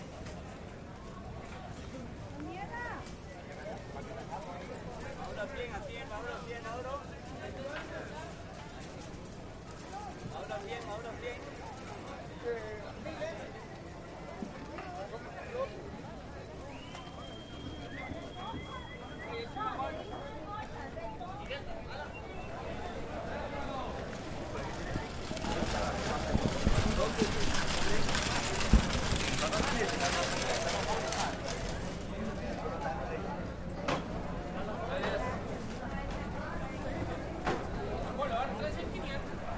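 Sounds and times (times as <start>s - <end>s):
walking through a fair at Plaza Viquez: 0.0s - 39.5s.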